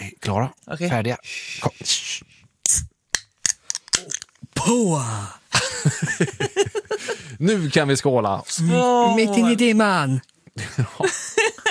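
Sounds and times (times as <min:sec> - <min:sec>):
speech: 0:00.2 - 0:02.9, 0:04.6 - 0:11.6
soda bottle cap clicks and rattles: 0:03.1 - 0:04.4
laughter: 0:05.6 - 0:07.3, 0:10.6 - 0:11.6.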